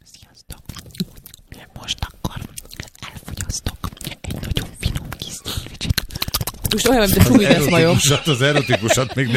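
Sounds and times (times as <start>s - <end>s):
ASMR mouth chewing: 0.2s - 7.5s
laughter: 6.8s - 9.3s
speech: 6.8s - 9.3s.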